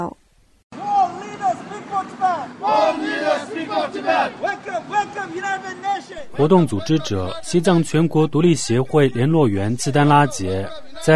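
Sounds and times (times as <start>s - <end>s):
speech: 0.0s - 0.2s, 2.2s - 11.1s
protesters chanting at a demonstration rally: 0.8s - 11.1s
laughter: 6.0s - 11.1s.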